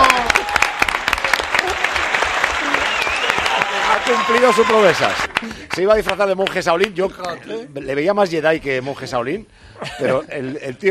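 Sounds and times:
audience applause: 0:00.0 - 0:06.6
speech: 0:04.3 - 0:10.8.

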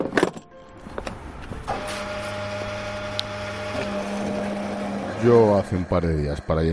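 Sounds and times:
fuel pump motor humming while filling a car's tank: 0:01.0 - 0:06.7
speech: 0:05.2 - 0:06.7.

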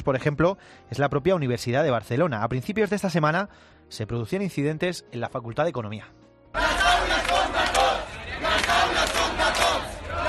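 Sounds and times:
speech: 0:00.0 - 0:07.3
students chanting slogans at a picket: 0:06.6 - 0:10.2.

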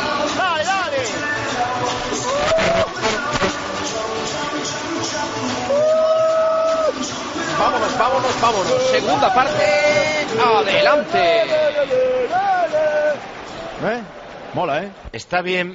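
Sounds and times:
football stadium crowd ambience at Riazor: 0:00.0 - 0:15.7
speech: 0:08.4 - 0:12.4, 0:13.8 - 0:15.7.

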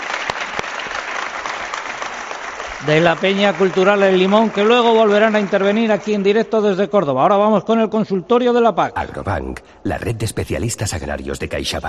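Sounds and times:
audience applause after a live performance by a cultural group: 0:00.0 - 0:06.5
speech: 0:02.8 - 0:11.8.

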